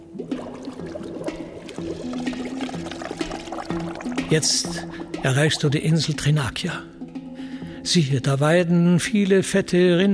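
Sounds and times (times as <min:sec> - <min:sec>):
whirlpool water gurgling and slurping: 0:00.0 - 0:06.3
speech: 0:04.3 - 0:07.0, 0:07.9 - 0:10.1.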